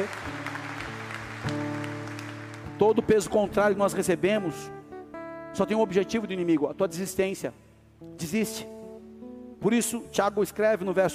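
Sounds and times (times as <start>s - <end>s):
audience applauding: 0.0s - 3.6s
sustained keyboard chords: 0.0s - 11.1s
speech: 2.8s - 4.8s, 5.6s - 8.8s, 9.6s - 11.1s.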